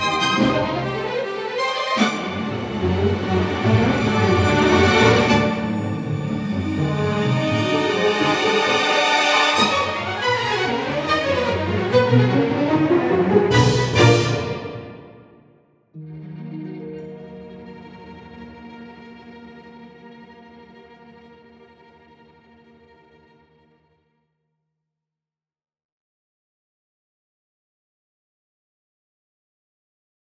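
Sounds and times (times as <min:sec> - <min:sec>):
string section: 0:00.0 - 0:15.4, 0:16.0 - 0:23.8.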